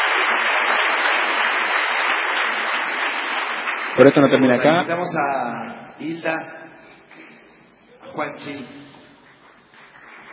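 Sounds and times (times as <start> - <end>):
audience applause: 0.0 - 5.2, 9.2 - 10.3
speech: 4.0 - 6.6, 8.2 - 8.8.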